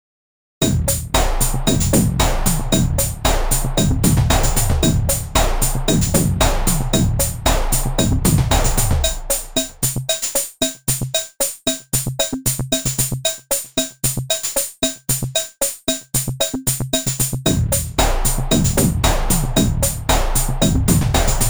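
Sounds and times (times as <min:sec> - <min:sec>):
drums: 0:00.6 - 0:21.4.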